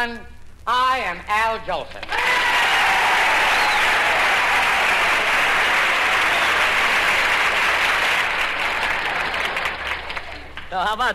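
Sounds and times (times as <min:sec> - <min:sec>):
speech: 0:00.0 - 0:02.5, 0:10.7 - 0:11.1
radio show audience applause: 0:02.0 - 0:10.7.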